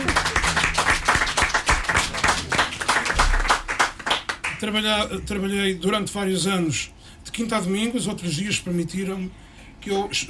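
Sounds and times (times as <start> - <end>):
applause: 0.0 - 4.9
speech: 4.6 - 10.2.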